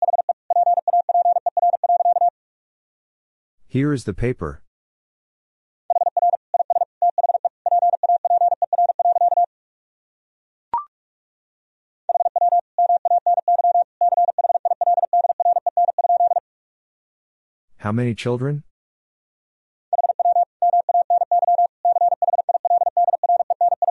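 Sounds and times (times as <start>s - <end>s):
Morse code sentence at 45 words per minute: 0.0s - 2.3s, 5.9s - 9.5s, 12.1s - 16.4s, 19.9s - 23.8s
speech: 3.7s - 4.6s, 17.8s - 18.7s.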